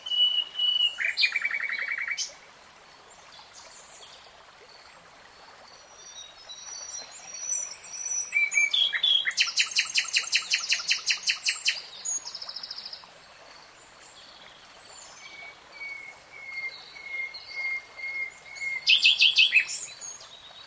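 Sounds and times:
nightingale song: 0.0 - 2.4, 5.9 - 13.1, 14.1 - 20.6.

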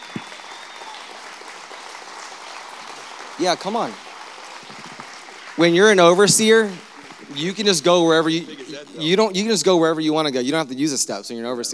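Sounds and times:
church congregation applause welcoming a guest pastor: 0.0 - 9.3
speech: 3.4 - 4.0, 5.6 - 11.7.

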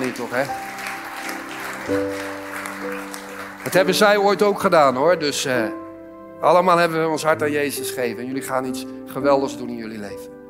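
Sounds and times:
audience applause: 0.0 - 4.8
sustained keyboard chord: 0.0 - 10.4
speech: 0.2 - 0.7, 1.9 - 5.8, 6.4 - 10.4.

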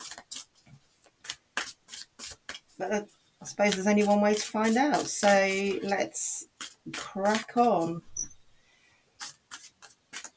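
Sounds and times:
tarot cards being shuffled: 0.0 - 8.1, 9.2 - 10.3
speech: 2.8 - 8.1.

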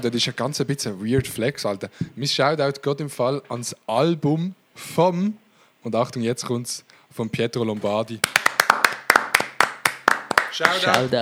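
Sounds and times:
speech: 0.0 - 8.4, 10.6 - 11.2
hands clapping near the microphone: 8.2 - 11.2.

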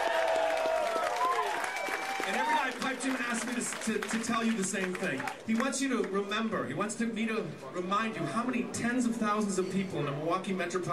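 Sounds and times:
audience applause: 0.0 - 5.7
speech: 2.3 - 10.9.

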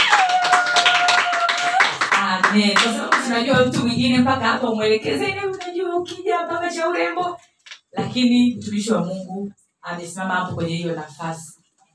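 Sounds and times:
audience applause for a minister at a church gathering: 0.0 - 2.2
speech: 2.5 - 11.5.

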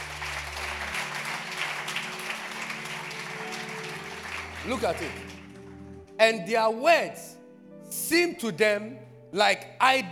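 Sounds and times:
audience clapping: 0.0 - 6.2
speech: 4.6 - 5.4, 6.2 - 10.0.

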